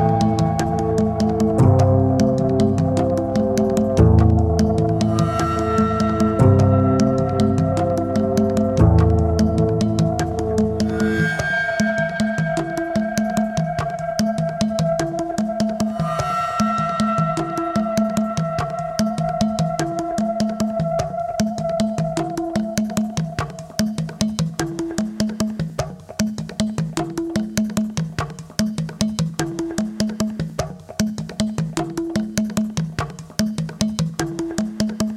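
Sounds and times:
bass chords: 0.0 - 11.2
percussion: 0.0 - 35.1.

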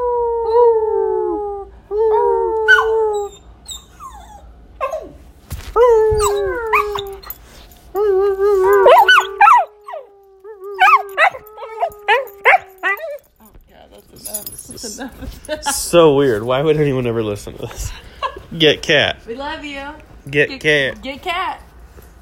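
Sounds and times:
dog howling: 0.0 - 5.2, 5.8 - 7.4, 8.0 - 13.3
speech: 15.9 - 21.6.

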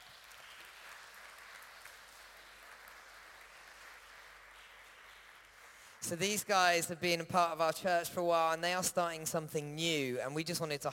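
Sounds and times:
audience applause: 0.0 - 6.2
speech: 6.0 - 10.9.

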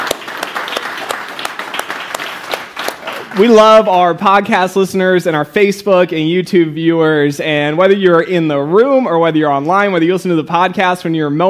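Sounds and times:
audience applause at a live gathering: 0.0 - 3.6
speech: 3.4 - 11.4.

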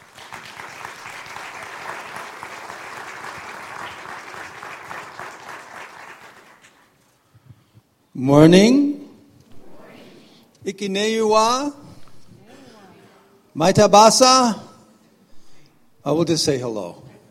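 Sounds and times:
church audience applause welcoming missionaries to the stage: 0.0 - 6.8
speech: 8.2 - 8.9, 10.8 - 11.8, 13.6 - 14.7, 16.0 - 17.0.

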